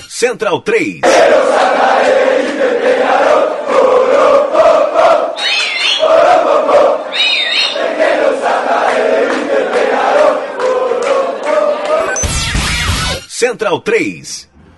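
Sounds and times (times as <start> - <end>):
speech: 0.2 - 7.4, 13.4 - 14.5
football fans chanting and cheering in stadium: 0.4 - 12.3
shrill whistles: 5.4 - 6.3, 7.1 - 8.0.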